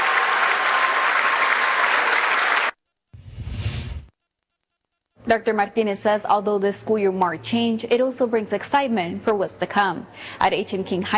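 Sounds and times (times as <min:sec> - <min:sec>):
audience applause: 0:00.0 - 0:02.8
low rumbling sweep: 0:03.2 - 0:04.1
speech: 0:05.3 - 0:11.1.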